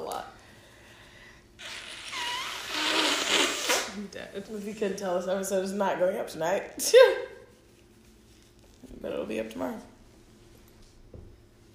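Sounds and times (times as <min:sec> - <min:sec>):
nose blowing: 0:01.6 - 0:04.0
speech: 0:04.2 - 0:07.3, 0:09.0 - 0:09.9.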